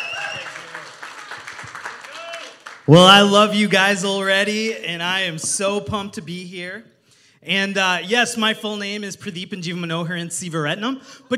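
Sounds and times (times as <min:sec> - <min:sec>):
church congregation applauding to welcome a pastor: 0:00.0 - 0:03.3
speech: 0:02.9 - 0:11.3.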